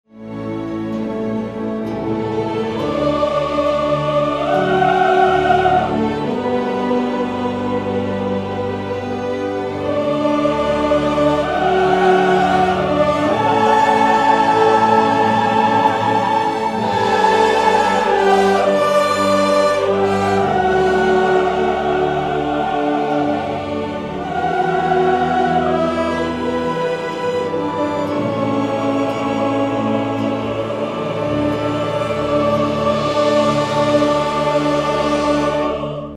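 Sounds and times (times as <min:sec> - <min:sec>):
orchestra: 0:00.1 - 0:36.1
choir: 0:00.2 - 0:36.1.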